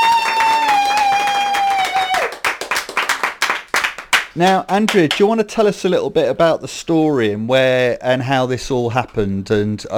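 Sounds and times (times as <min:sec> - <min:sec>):
audience applause: 0:00.0 - 0:04.3
speech: 0:04.4 - 0:09.9.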